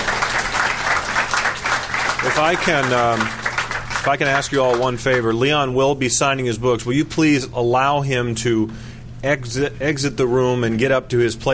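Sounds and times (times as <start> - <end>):
audience applause for panelists: 0.0 - 5.3
speech: 2.3 - 3.4, 4.0 - 11.5.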